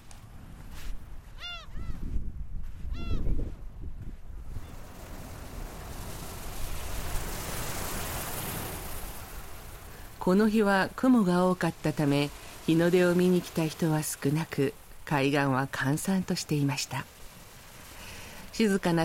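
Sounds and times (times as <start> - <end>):
waves breaking on a sandy beach: 4.4 - 19.0
speech: 10.2 - 17.2, 18.6 - 19.0.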